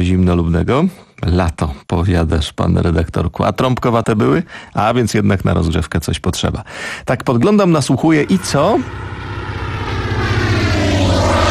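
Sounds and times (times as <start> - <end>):
speech: 0.0 - 9.2
propeller plane passing overhead: 8.1 - 11.4.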